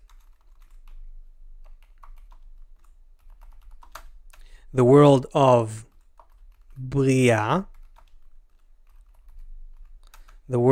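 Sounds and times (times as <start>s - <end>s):
typing Hebrew words on a computer keyboard: 0.0s - 1.0s, 1.6s - 4.4s, 5.9s - 6.9s, 7.6s - 10.5s
speech: 4.7s - 5.9s, 6.9s - 7.7s, 10.5s - 10.7s.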